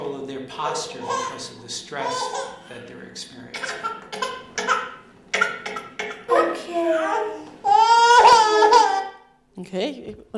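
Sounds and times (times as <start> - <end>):
speech: 0.5 - 4.4, 9.6 - 10.3
infant crying to get its mother back: 1.0 - 1.4, 2.0 - 2.6, 3.6 - 9.3.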